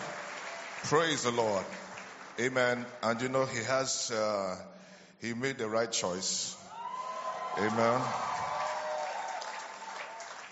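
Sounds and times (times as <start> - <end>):
church congregation clapping: 0.0 - 3.3, 7.1 - 10.4
speech: 0.8 - 1.8, 2.4 - 6.6, 7.6 - 8.4.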